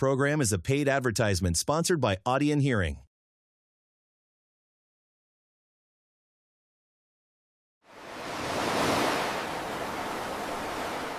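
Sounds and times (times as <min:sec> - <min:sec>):
speech: 0:00.0 - 0:03.1
ocean surf roaring: 0:07.9 - 0:11.1.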